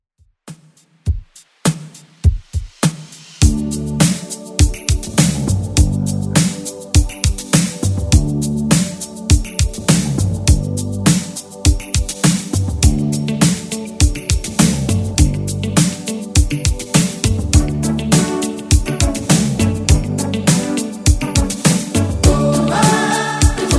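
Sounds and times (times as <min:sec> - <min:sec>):
80s drum beat: 0:00.2 - 0:23.7.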